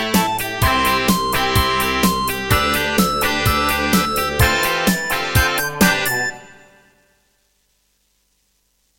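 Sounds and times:
Raptor Wave 1 synthesizer sound from MidiPlus MiniEngine USB: 0:00.0 - 0:07.1.

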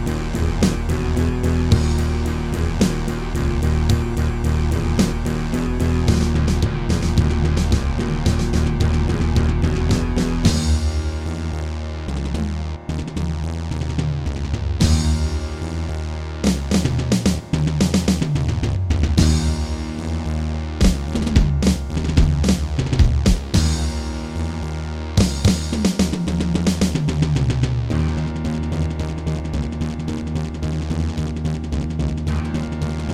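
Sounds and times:
Terratec MiniWaveSystem WT64 wavetable synthesizer: 0:00.0 - 0:33.1.

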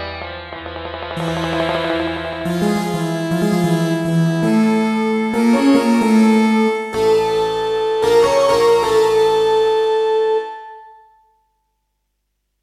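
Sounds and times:
synthesizer sound module in XG mode: 0:01.2 - 0:11.0.

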